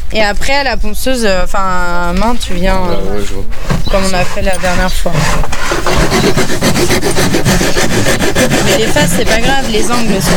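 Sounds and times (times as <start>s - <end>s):
speech: 0.1s - 10.3s
rasp filing a wooden workpiece, rounding its edges: 2.4s - 10.3s.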